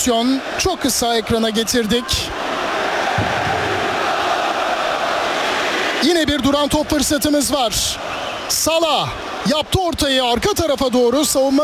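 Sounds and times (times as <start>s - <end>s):
speech: 0.0s - 2.5s, 3.2s - 3.6s, 6.0s - 11.6s
stadium crowd roaring for Mohamed Salah taking a corner kick: 0.0s - 11.6s.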